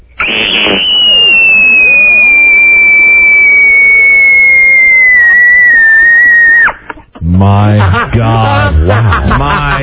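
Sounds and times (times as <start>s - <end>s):
piercing high-pitched sustained human scream: 0.2s - 6.8s
laughter: 7.2s - 9.8s
speech: 7.6s - 9.8s.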